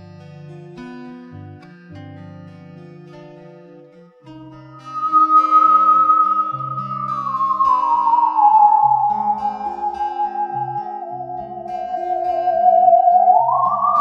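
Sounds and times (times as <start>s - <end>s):
theremin: 4.6s - 13.9s.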